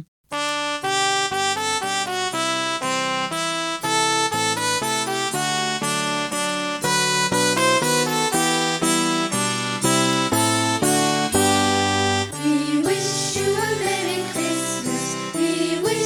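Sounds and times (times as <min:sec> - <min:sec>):
karaoke backing of a Christmas song: 0:00.4 - 0:16.0.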